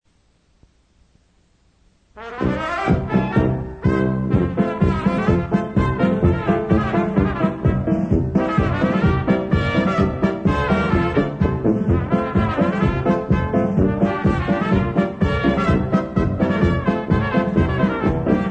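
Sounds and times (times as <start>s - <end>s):
polka music: 2.2s - 18.4s.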